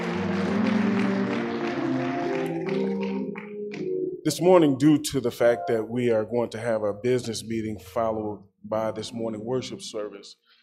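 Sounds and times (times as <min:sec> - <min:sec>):
audience hand clapping: 0:00.0 - 0:04.0
speech: 0:04.2 - 0:10.5.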